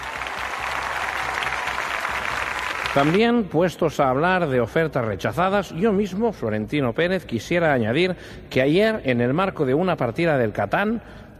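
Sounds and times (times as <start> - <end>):
crowd applause: 0.0 - 3.4
speech: 2.9 - 11.2.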